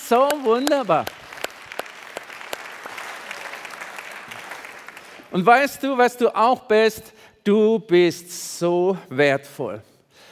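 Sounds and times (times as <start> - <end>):
applause: 0.0 - 5.7
speech: 0.1 - 1.2, 5.3 - 9.9.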